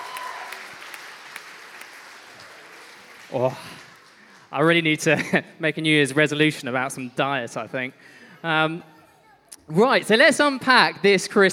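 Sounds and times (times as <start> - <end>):
round of applause: 0.0 - 4.5
speech: 3.3 - 3.8, 4.5 - 8.9, 9.6 - 11.5.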